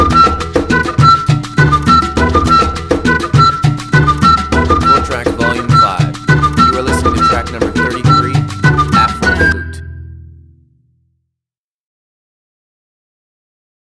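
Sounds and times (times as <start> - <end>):
afro flute: 0.0 - 10.2.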